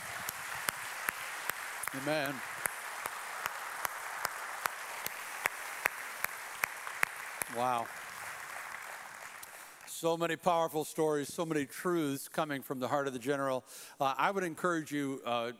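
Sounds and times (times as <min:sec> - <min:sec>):
crowd applauding: 0:00.0 - 0:10.0
speech: 0:01.9 - 0:02.5, 0:07.5 - 0:08.0, 0:10.0 - 0:15.5.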